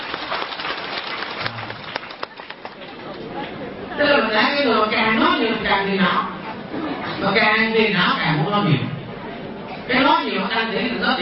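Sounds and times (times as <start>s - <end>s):
audience applauding at a talk: 0.0s - 3.2s
speech: 4.0s - 6.3s, 7.2s - 8.9s, 9.9s - 11.2s.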